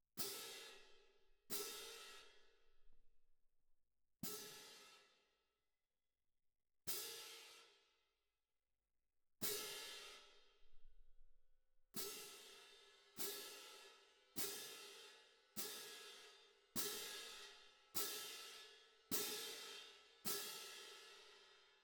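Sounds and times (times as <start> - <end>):
percussion: 0.1 - 3.0, 4.2 - 5.1, 9.4 - 11.2, 11.9 - 21.8.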